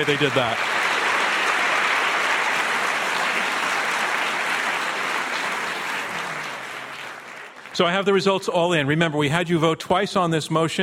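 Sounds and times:
speech: 0.0s - 0.7s, 7.8s - 10.8s
audience applause: 0.0s - 8.2s.

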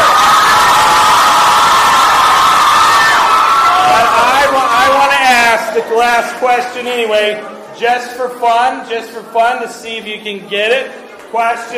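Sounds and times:
crowd cheering: 0.0s - 5.8s
speech: 5.8s - 11.7s.

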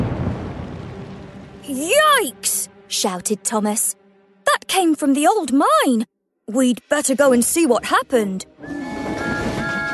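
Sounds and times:
distant explosion: 0.0s - 1.4s
speech: 1.7s - 8.9s.

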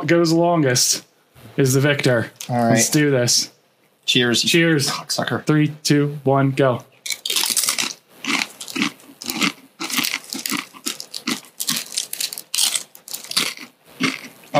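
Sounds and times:
speech: 0.0s - 6.9s
crunching and chewing food: 7.0s - 14.5s.

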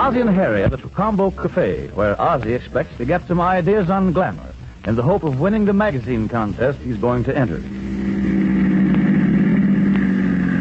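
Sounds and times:
speech: 0.1s - 7.9s
taxi cab pulling up: 7.4s - 10.5s.

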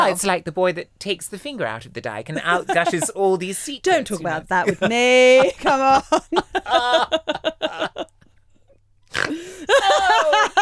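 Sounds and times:
speech: 0.1s - 8.1s
person laughing: 4.7s - 8.2s, 9.3s - 10.5s
person snorting while laughing: 9.1s - 9.7s.

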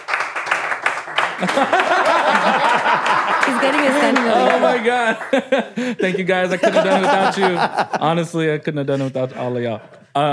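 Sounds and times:
person clapping: 0.0s - 5.4s
laughter: 1.2s - 8.4s
speech: 1.4s - 10.3s.

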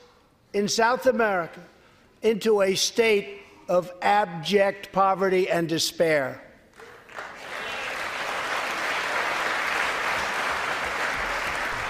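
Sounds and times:
speech: 0.5s - 6.4s
applause, clapping: 6.8s - 11.8s.

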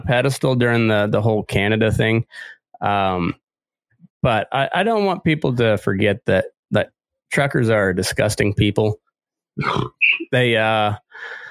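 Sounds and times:
speech: 0.1s - 3.4s, 4.2s - 9.0s, 9.6s - 11.4s
loud drawn-out belch: 9.6s - 10.0s.

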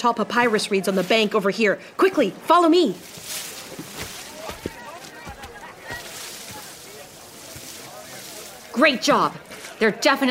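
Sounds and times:
speech: 0.0s - 4.0s, 8.8s - 10.2s
steady wash of moving water: 0.4s - 10.0s
light wind: 0.8s - 9.8s.

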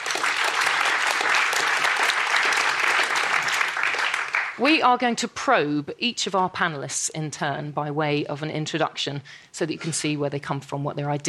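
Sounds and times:
audience applause: 0.0s - 4.6s
speech: 4.6s - 11.2s.

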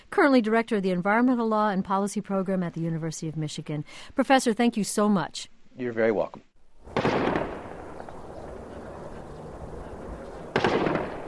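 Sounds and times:
speech: 0.2s - 7.2s
gunfire from Taliban fighters battling police in Kabul: 6.9s - 8.1s, 10.5s - 11.2s.

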